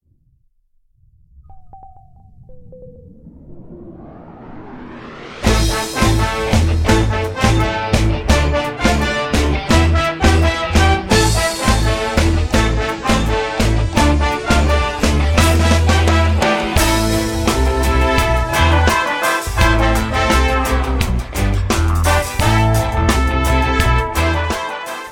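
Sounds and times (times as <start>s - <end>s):
reggae music: 5.5s - 25.1s.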